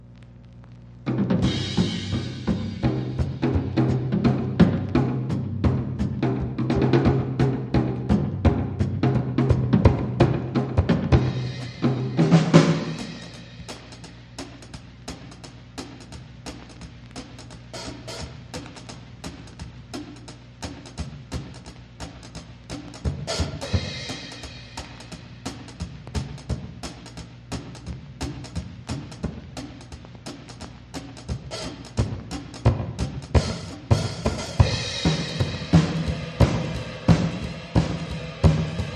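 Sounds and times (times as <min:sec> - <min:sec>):
drums: 0:00.0 - 0:38.9.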